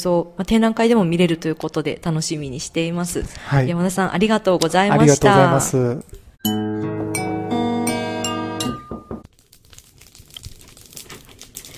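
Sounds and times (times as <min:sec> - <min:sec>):
speech: 0:00.0 - 0:06.9
bright sustained musical chord: 0:06.4 - 0:09.1
crackling and popping of burning field vegetation: 0:09.2 - 0:11.7.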